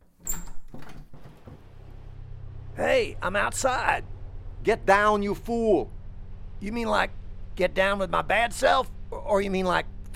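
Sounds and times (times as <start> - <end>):
door opening and closing: 0.0 - 2.1
speech: 2.8 - 6.0, 6.6 - 10.1.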